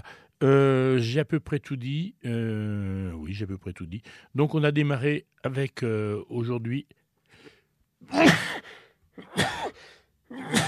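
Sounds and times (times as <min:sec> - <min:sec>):
speech: 0:00.1 - 0:07.0, 0:08.0 - 0:10.6
sneeze: 0:08.1 - 0:08.6, 0:09.2 - 0:10.6.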